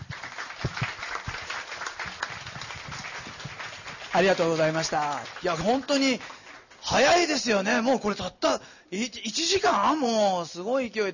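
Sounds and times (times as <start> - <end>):
audience applauding: 0.0 - 7.3
speech: 4.2 - 11.1.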